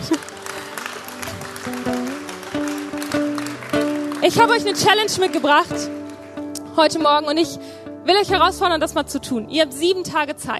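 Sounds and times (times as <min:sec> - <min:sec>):
audience clapping: 0:00.0 - 0:06.7
speech: 0:01.7 - 0:02.1, 0:04.2 - 0:06.0, 0:06.8 - 0:10.5.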